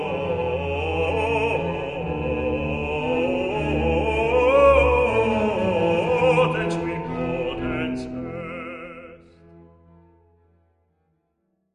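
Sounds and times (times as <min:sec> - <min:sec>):
bass voice in choir: 0:00.0 - 0:09.3.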